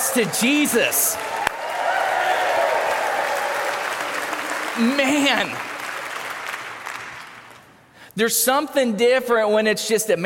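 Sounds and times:
audience applause: 0:00.0 - 0:07.7
speech: 0:00.1 - 0:01.5, 0:04.8 - 0:05.7, 0:08.2 - 0:10.2.

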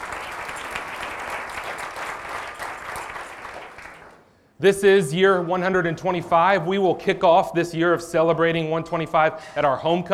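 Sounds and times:
audience applause: 0:00.0 - 0:04.2
speech: 0:04.6 - 0:10.1.

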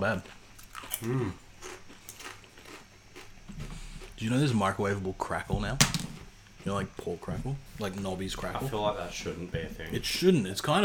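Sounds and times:
speech: 0:00.0 - 0:00.4, 0:01.0 - 0:01.4, 0:04.2 - 0:06.0, 0:06.6 - 0:10.8
crunching a barbecue potato chip: 0:00.1 - 0:03.3.

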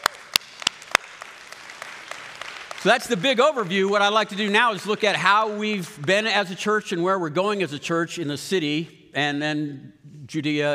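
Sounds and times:
church congregation applause: 0:00.0 - 0:06.9
speech: 0:02.8 - 0:10.7.

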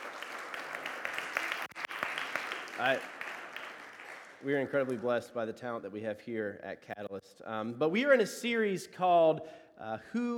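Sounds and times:
audience applause: 0:00.0 - 0:05.0
speech: 0:02.8 - 0:03.2, 0:04.4 - 0:10.3.

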